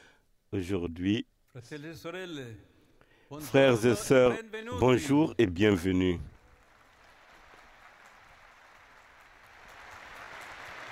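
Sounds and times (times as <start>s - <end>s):
speech: 0.5s - 6.3s
sustained applause from a large audience: 6.3s - 10.9s.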